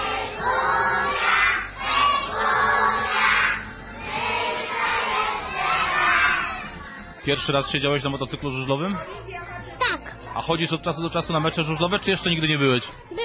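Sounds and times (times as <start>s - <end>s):
children chanting a team fight song together: 0.0s - 6.8s
speech: 7.3s - 9.6s, 10.4s - 13.2s.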